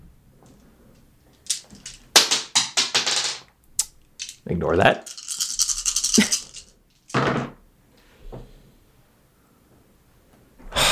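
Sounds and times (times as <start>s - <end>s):
dice clattering and tumbling: 1.4s - 4.4s, 5.0s - 7.2s
speech: 4.5s - 5.2s.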